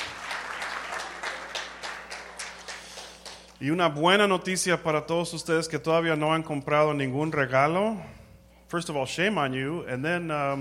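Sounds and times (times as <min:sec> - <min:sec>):
audience clapping: 0:00.0 - 0:03.6
low hum: 0:00.0 - 0:10.5
speech: 0:03.6 - 0:10.5.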